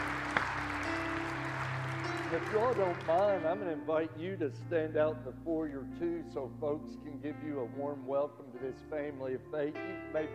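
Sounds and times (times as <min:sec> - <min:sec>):
audience applause: 0:00.0 - 0:03.5
speech: 0:02.3 - 0:10.3.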